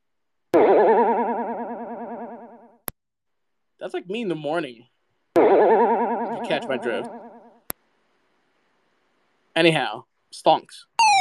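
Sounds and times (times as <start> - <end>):
warbling tone with strong vibrato offered as a kangaroo call: 0.6 - 2.8, 5.4 - 7.6
speech: 3.8 - 7.2, 9.6 - 10.9.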